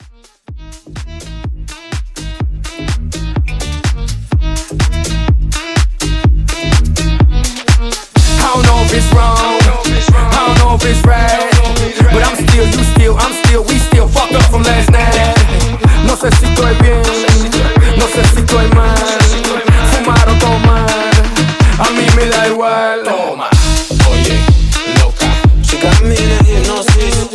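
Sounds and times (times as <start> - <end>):
club music at 125 BPM: 0.0 - 27.3.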